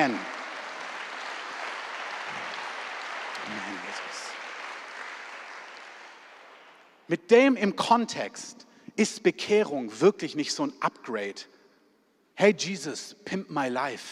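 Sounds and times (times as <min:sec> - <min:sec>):
speech: 0:00.0 - 0:00.3, 0:03.5 - 0:04.4, 0:07.1 - 0:11.5, 0:12.4 - 0:14.1
audience applause: 0:00.0 - 0:07.0.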